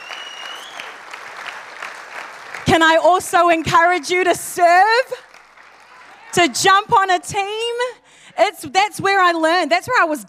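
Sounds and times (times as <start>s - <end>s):
audience applause: 0.0s - 7.0s
speech: 2.8s - 5.3s, 6.3s - 10.2s.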